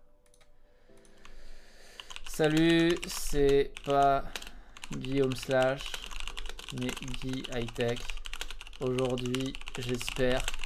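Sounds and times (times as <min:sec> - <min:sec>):
computer keyboard typing: 0:00.2 - 0:10.6
speech: 0:02.4 - 0:06.0, 0:06.7 - 0:08.2, 0:08.8 - 0:10.6.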